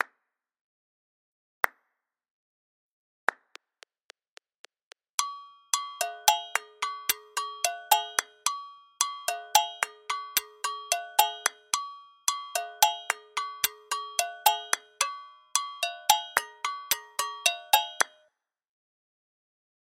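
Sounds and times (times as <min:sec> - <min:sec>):
adenkum African rhythm: 0:05.2 - 0:18.2.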